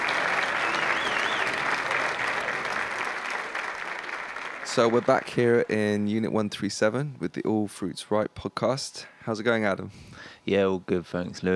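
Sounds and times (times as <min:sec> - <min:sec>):
faint whistle: 0:00.0 - 0:02.4
audience round of applause: 0:00.0 - 0:06.1
speech: 0:04.8 - 0:11.5.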